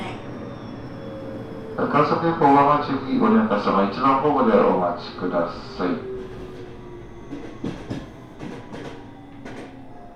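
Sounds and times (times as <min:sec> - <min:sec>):
express train departing station: 0:00.0 - 0:10.1
speech: 0:01.8 - 0:06.1
wheels clacking over rail joints: 0:06.0 - 0:10.1.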